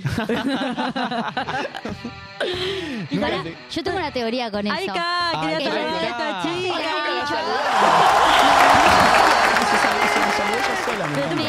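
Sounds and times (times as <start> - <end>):
laughter: 0.0 - 3.4, 7.3 - 11.4
speech: 0.2 - 9.1, 9.7 - 11.4
applause: 7.7 - 11.4.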